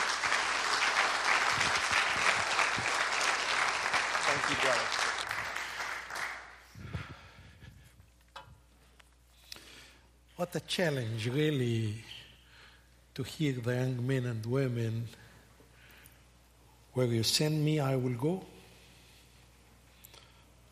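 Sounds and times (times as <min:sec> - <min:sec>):
audience applause: 0:00.0 - 0:06.6
speech: 0:10.5 - 0:12.1, 0:13.2 - 0:15.2, 0:17.0 - 0:18.5.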